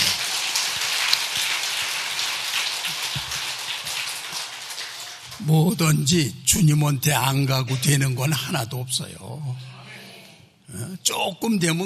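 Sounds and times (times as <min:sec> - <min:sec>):
audience applause: 0:00.0 - 0:05.5
speech: 0:05.4 - 0:09.8, 0:10.7 - 0:11.8.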